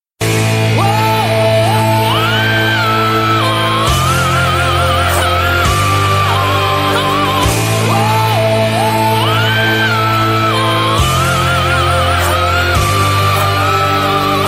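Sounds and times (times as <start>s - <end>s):
vocal chant loop: 0.4s - 14.4s.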